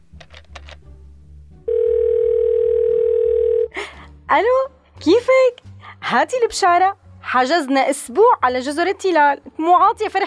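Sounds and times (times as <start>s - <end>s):
telephone ringback tone: 1.7s - 3.7s
speech: 4.3s - 10.2s.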